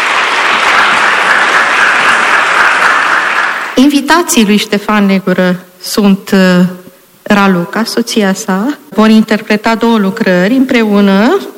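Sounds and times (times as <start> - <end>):
audience applauding the orchestra: 0.0 - 3.8
speech: 3.8 - 11.5.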